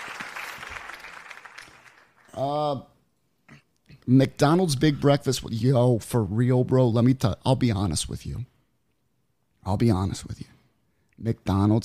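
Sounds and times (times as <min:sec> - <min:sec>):
hand clapping applause: 0:00.0 - 0:02.3
speech: 0:02.4 - 0:02.9, 0:04.0 - 0:08.5, 0:09.6 - 0:10.5, 0:11.2 - 0:11.8.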